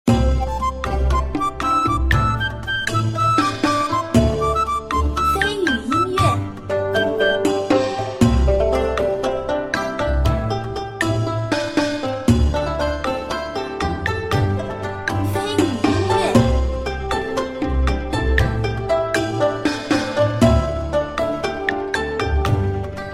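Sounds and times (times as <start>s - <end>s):
cheerful casual game music: 0.1s - 23.1s.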